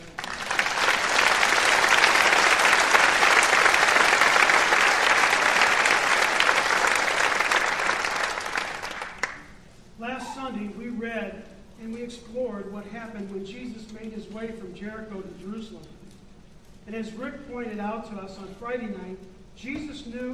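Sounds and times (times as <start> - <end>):
audience applause: 0.0 - 9.4
speech: 13.8 - 16.0, 16.9 - 20.3.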